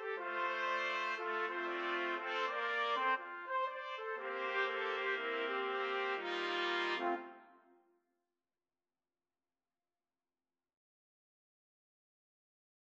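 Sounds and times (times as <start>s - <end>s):
trumpet quartet playing: 0.0s - 7.6s.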